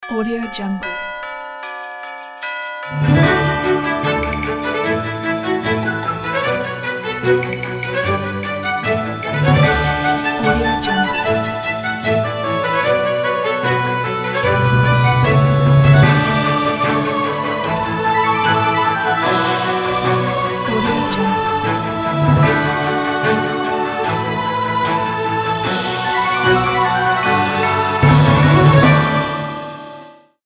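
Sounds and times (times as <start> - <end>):
Christmas logo jingle: 0.0 - 30.4.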